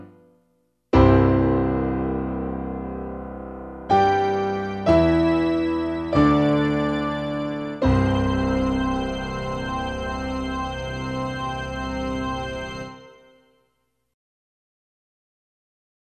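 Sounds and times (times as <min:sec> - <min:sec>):
piano concerto: 0:01.0 - 0:13.3.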